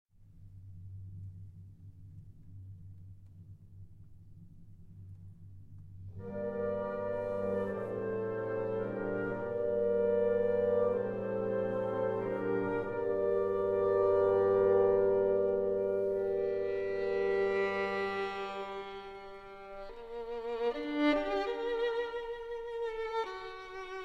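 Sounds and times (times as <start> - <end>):
violin concerto movement in G minor, allegro moderato: 6.2 - 24.0.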